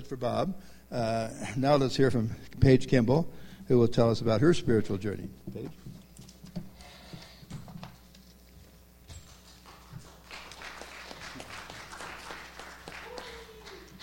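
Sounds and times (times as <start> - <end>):
speech: 0.1 - 6.0
audience applause: 9.4 - 14.0.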